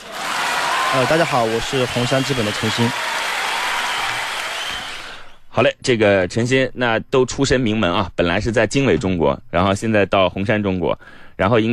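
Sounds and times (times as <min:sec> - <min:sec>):
audience applause: 0:00.0 - 0:05.2
speech: 0:00.9 - 0:03.3, 0:05.6 - 0:11.7.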